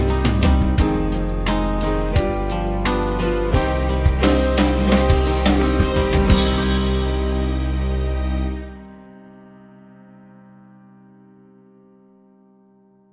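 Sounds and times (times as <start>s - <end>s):
band playing: 0.0s - 8.9s.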